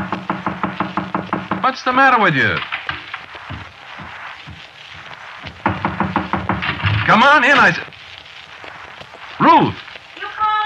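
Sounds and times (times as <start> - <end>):
knocking on a door: 0.0 - 1.6, 2.9 - 4.6, 5.6 - 7.1
speech: 1.6 - 2.7, 7.1 - 7.9.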